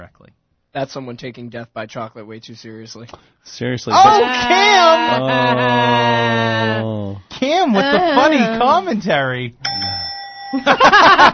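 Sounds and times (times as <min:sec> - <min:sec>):
speech: 0:00.0 - 0:09.7, 0:10.5 - 0:11.3
lively voices and laughter: 0:04.0 - 0:08.8
bell ding: 0:09.6 - 0:10.8.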